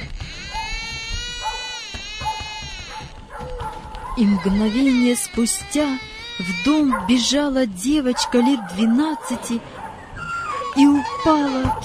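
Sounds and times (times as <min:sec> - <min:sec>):
child crying out in the night: 0:00.0 - 0:03.4, 0:04.1 - 0:07.4, 0:10.2 - 0:11.8
speech: 0:04.2 - 0:09.8, 0:10.8 - 0:11.8.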